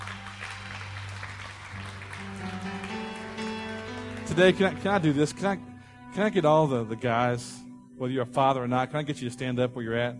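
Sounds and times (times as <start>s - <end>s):
audience applause: 0.0s - 5.3s
speech: 4.3s - 10.1s.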